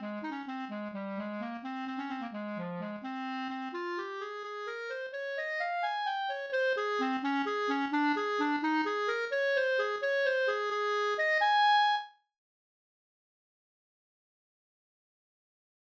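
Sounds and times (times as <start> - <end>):
Bb clarinet: 0.0 - 12.2.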